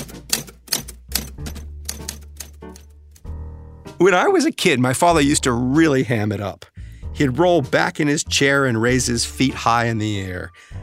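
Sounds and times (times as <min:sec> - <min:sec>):
typewriter typing: 0:00.0 - 0:02.9
speech: 0:04.0 - 0:10.8.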